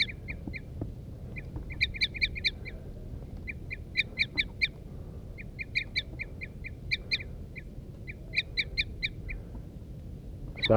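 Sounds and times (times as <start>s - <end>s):
wild birds calling: 0.0s - 10.7s.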